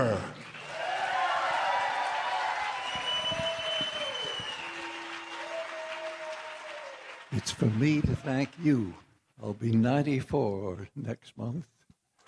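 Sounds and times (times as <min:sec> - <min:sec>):
audience applause welcoming a singer: 0:00.0 - 0:09.0
speech: 0:07.4 - 0:11.8.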